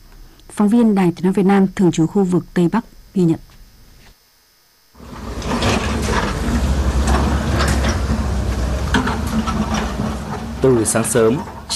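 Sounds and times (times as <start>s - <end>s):
speech: 0.6s - 3.5s, 10.6s - 11.7s
excavators clearing flood debris from roads: 5.0s - 11.7s
hoes and shovels clanking and scraping clearing flood debris: 5.0s - 11.7s.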